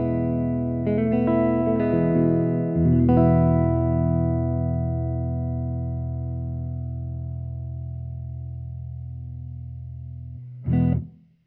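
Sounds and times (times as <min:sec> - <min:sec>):
country music: 0:00.0 - 0:07.0.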